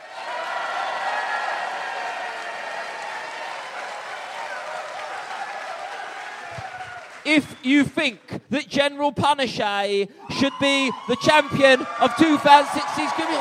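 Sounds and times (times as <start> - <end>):
crowd screaming and cheering: 0.0 - 7.7, 10.2 - 13.3
applause: 0.0 - 8.4, 11.6 - 13.3
speech: 7.3 - 13.3.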